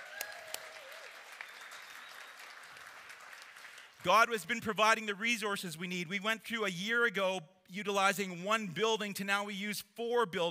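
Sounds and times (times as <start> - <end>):
applause: 0.0 - 4.8
speech: 4.0 - 10.4.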